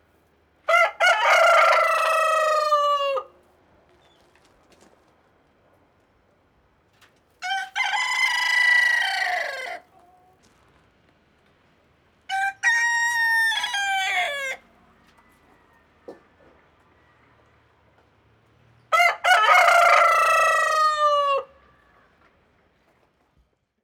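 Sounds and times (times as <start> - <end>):
rooster and hen clucking indoors: 0.6 - 3.4, 7.4 - 10.4, 12.3 - 17.7, 18.9 - 22.2.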